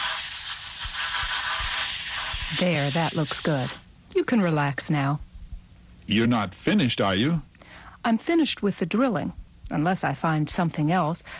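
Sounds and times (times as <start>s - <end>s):
dental water spray hissing: 0.0s - 3.8s
speech: 2.5s - 5.2s, 6.1s - 11.3s
soft low thumps: 5.2s - 5.7s.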